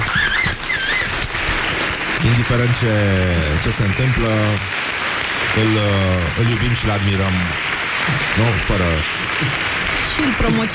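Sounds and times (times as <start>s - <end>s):
high wavering whistles: 0.0s - 1.2s
applause: 0.0s - 10.7s
speech: 2.4s - 4.8s, 5.5s - 10.7s.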